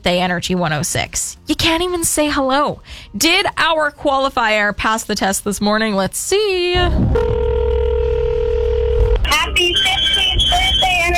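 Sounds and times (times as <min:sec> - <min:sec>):
speech: 0:00.0 - 0:07.5
telephone line tone during a radio call-in contest: 0:07.1 - 0:11.1
voice answering over the telephone line: 0:09.3 - 0:11.1.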